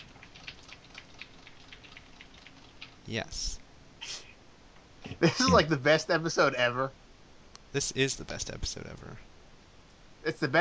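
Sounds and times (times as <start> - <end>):
typing on a computer keyboard: 0.0 - 3.0
constant soft hiss: 0.0 - 10.5
speech: 3.1 - 4.2, 5.1 - 7.0, 7.7 - 9.3, 10.2 - 10.5.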